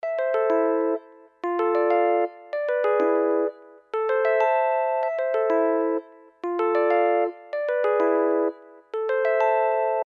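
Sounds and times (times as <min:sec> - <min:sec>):
piano: 0:00.1 - 0:10.0.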